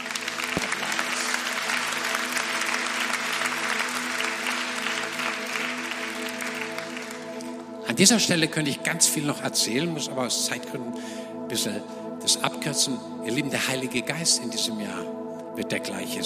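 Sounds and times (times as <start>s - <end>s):
audience applause: 0.0s - 7.6s
speech: 8.0s - 16.2s.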